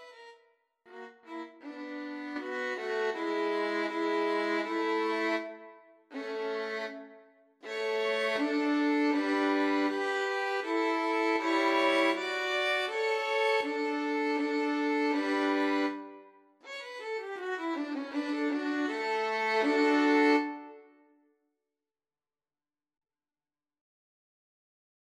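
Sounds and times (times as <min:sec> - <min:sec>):
violin trio playing: 0:00.9 - 0:20.8.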